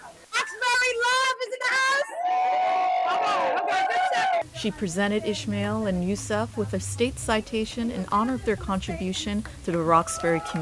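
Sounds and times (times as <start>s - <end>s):
crowd cheering: 0.0s - 4.5s, 9.7s - 10.6s
high sustained whoops and shouts: 1.9s - 4.4s, 10.0s - 10.6s
speech: 4.6s - 10.6s.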